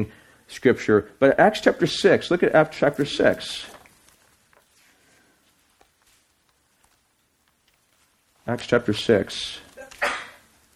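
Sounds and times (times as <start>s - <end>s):
speech: 0.0s - 3.8s, 8.5s - 9.6s
person sneezing: 9.8s - 10.5s.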